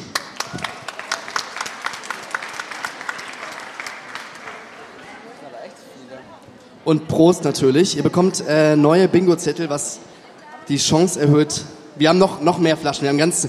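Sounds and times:
audience applause: 0.0 - 5.3
speech: 6.9 - 10.1, 10.7 - 13.4.

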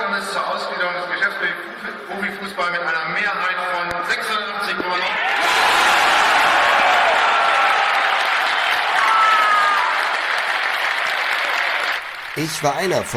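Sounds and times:
speech: 0.2 - 5.2, 12.4 - 13.1
large crowd of members clapping and cheering: 5.2 - 13.1
whoops: 8.7 - 10.2.

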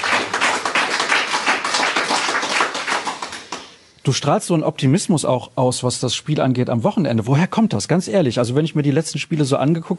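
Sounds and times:
applause: 0.0 - 3.8
speech: 4.0 - 9.9.

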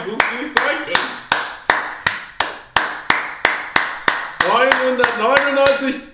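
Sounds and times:
single pair of hands clapping: 0.0 - 6.1
speech: 4.9 - 6.1.

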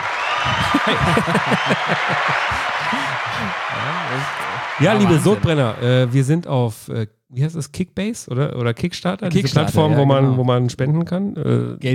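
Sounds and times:
applause: 0.0 - 6.2
voices talking and chuckling: 0.6 - 5.0
speech: 0.8 - 11.9.

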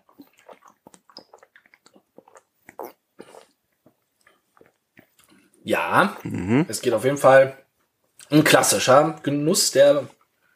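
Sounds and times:
people sipping and swallowing a sweet beverage: 0.0 - 5.4, 6.2 - 6.7
speech: 5.6 - 7.6, 8.3 - 10.5.

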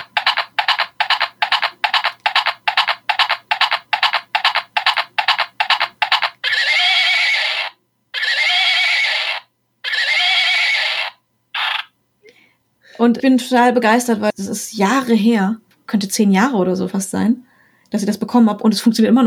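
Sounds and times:
pink unicorn hobby horse toy galloping hoof clicks: 0.0 - 6.4
pink unicorn hobby horse toy neighing whinnies: 6.4 - 11.9
speech: 13.0 - 19.2.

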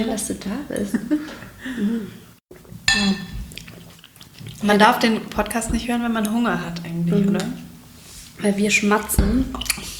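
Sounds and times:
speech: 0.0 - 2.2, 2.9 - 3.3, 4.6 - 7.6, 8.4 - 9.9
wine glasses clinking in a toast: 2.9 - 3.3.

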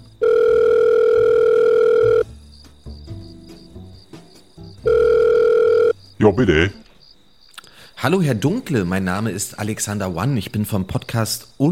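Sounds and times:
telephone dial tone: 0.2 - 2.2, 4.9 - 5.9
speech: 6.2 - 6.8, 8.0 - 11.7.

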